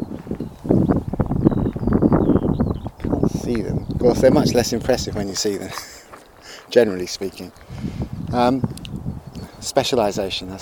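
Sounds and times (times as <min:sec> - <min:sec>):
skylarks singing: 0:00.0 - 0:10.6
speech: 0:03.5 - 0:06.0, 0:06.7 - 0:08.7, 0:09.7 - 0:10.6.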